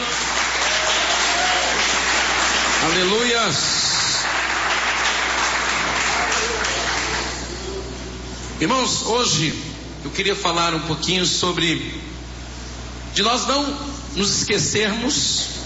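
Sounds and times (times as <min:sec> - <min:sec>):
audience clapping in church: 0:00.0 - 0:07.5
speech: 0:02.9 - 0:03.9, 0:08.6 - 0:12.1, 0:13.2 - 0:15.5.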